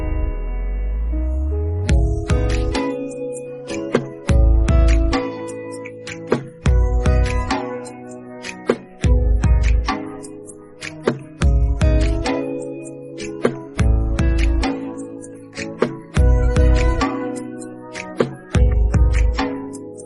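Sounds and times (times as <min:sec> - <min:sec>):
instrumental ringtone: 0:00.1 - 0:20.0.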